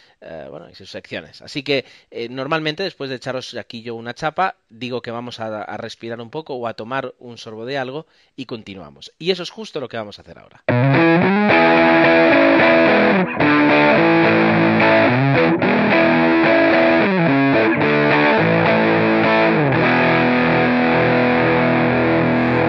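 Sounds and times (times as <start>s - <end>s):
speech: 0.2s - 12.2s, 13.1s - 16.1s
guitar chords music interlude: 10.7s - 22.6s.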